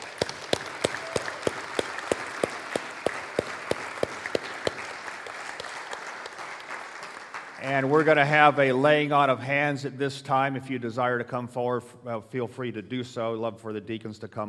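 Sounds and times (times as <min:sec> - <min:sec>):
audience applause: 0:00.0 - 0:08.0
speech: 0:07.6 - 0:14.4.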